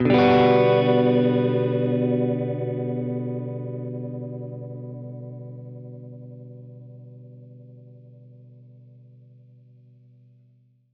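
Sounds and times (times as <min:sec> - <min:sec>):
Gretsch guitar chord Bminb6: 0:00.0 - 0:08.0.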